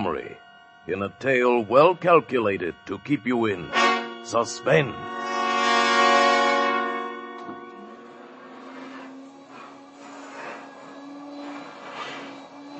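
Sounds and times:
speech: 0.0 - 5.2
vacuum cleaner running: 0.0 - 12.7.

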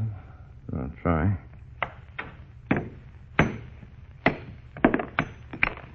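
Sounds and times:
speech: 0.8 - 1.5
hammer striking and breaking a stone: 1.8 - 5.9.

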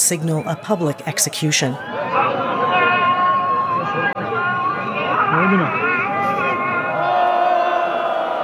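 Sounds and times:
speech: 0.1 - 2.5, 5.4 - 5.9
crowd of protesters booing the call to prayer in Isfahan, Iran: 1.7 - 8.4.

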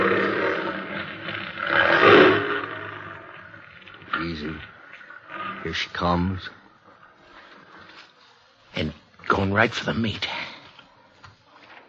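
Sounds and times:
big cat roaring: 0.0 - 6.6
speech: 5.6 - 6.6, 9.5 - 10.4.

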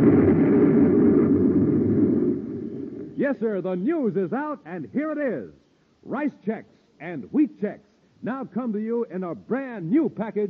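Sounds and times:
explosion sound effect with deep rumbling roar: 0.0 - 3.2
speech: 3.3 - 10.4.

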